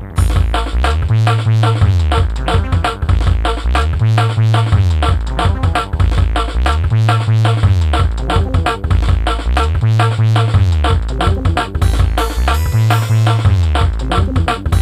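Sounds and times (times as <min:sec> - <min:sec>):
drum and bass beat with stutter: 0:00.1 - 0:14.8.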